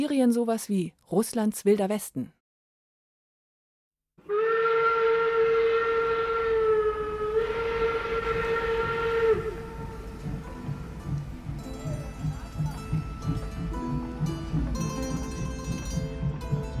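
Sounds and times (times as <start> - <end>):
speech: 0.0 - 2.4
steam train whistle on the Trans-Siberian Railway: 4.2 - 10.9
rumbling hiss of the moving train: 5.2 - 16.7.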